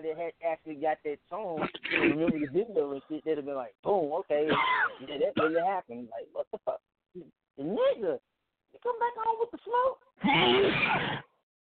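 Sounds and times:
speech: 0:00.0 - 0:08.2, 0:08.8 - 0:11.3
sneeze: 0:01.6 - 0:02.4, 0:10.2 - 0:11.3.

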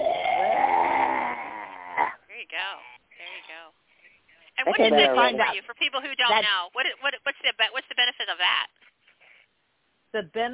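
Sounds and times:
Durga breathing forceful voiced exhale with tongue hanging out: 0:00.0 - 0:02.2
speech: 0:04.7 - 0:08.8, 0:10.1 - 0:10.5.

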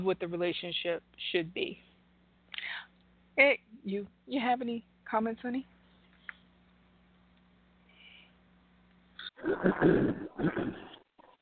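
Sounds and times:
speech: 0:00.0 - 0:01.9, 0:02.6 - 0:05.7, 0:09.4 - 0:10.9
throat clearing: 0:09.5 - 0:11.0.

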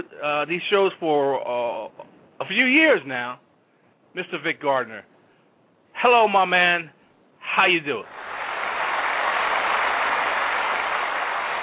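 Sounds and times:
speech: 0:00.2 - 0:03.4, 0:04.2 - 0:05.1, 0:06.0 - 0:07.0, 0:07.6 - 0:08.2
hand clapping: 0:08.1 - 0:11.6.

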